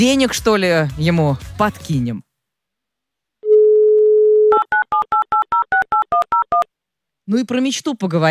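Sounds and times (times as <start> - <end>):
speech: 0.0 - 2.3, 7.3 - 8.2
telephone call tones: 3.4 - 6.6.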